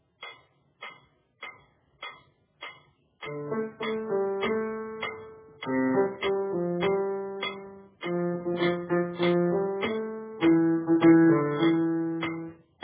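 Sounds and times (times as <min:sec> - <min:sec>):
soprano accompaniment music: 0:03.2 - 0:12.8.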